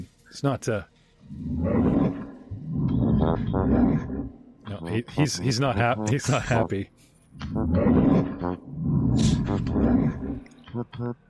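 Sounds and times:
music: 0:00.0 - 0:07.4
speech: 0:00.3 - 0:02.0, 0:03.3 - 0:11.2
bear growling sound effect: 0:01.2 - 0:04.5, 0:07.4 - 0:11.1.

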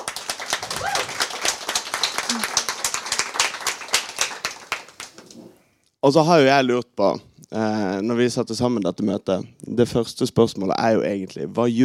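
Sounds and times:
small audience applause: 0:00.0 - 0:05.4
speech: 0:06.0 - 0:11.8.

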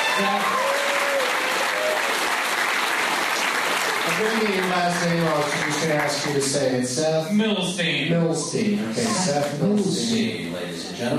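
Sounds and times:
audience applause: 0:00.0 - 0:06.8
speech: 0:00.2 - 0:00.6, 0:04.2 - 0:11.1.

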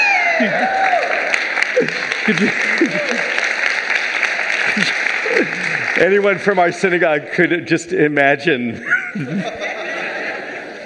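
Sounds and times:
laughter: 0:00.0 - 0:06.2, 0:08.7 - 0:10.8
voices over clapping: 0:00.0 - 0:06.6
audience applause welcoming a rabbi: 0:00.0 - 0:07.3
speech: 0:00.4 - 0:00.8, 0:02.3 - 0:03.0, 0:06.0 - 0:09.7.

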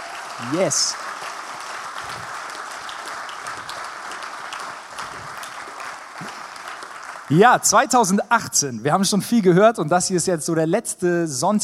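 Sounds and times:
applause: 0:00.0 - 0:08.2
speech: 0:00.4 - 0:01.1, 0:07.3 - 0:11.6.

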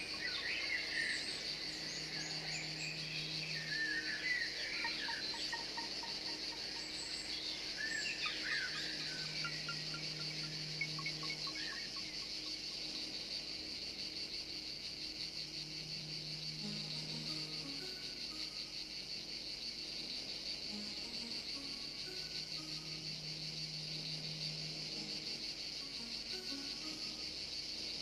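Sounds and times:
bird chirps: 0:00.0 - 0:12.9
insects shrilling: 0:00.0 - 0:28.0.

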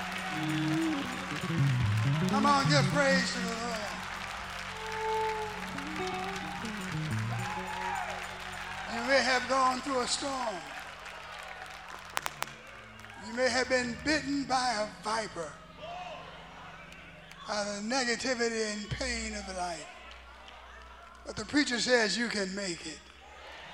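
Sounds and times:
audience clapping hands: 0:00.0 - 0:13.2
speech: 0:02.4 - 0:03.5, 0:09.2 - 0:10.8, 0:13.3 - 0:15.6, 0:17.5 - 0:20.0, 0:21.2 - 0:23.1.

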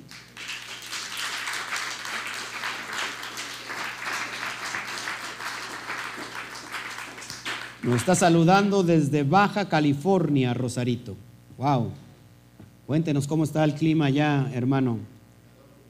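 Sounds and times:
applause: 0:00.0 - 0:08.4
speech: 0:07.8 - 0:12.0, 0:12.9 - 0:15.1.

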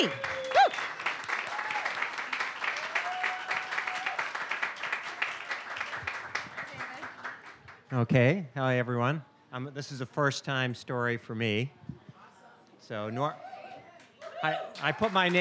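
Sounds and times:
speech: 0:00.0 - 0:00.3, 0:07.9 - 0:11.8, 0:12.9 - 0:13.5, 0:14.4 - 0:15.3
audience applause: 0:00.0 - 0:07.8, 0:14.4 - 0:15.3.

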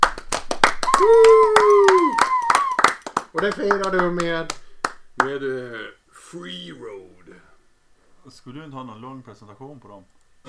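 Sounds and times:
applause: 0:00.0 - 0:05.4
speech: 0:03.4 - 0:04.6, 0:05.2 - 0:07.5, 0:08.2 - 0:10.4.

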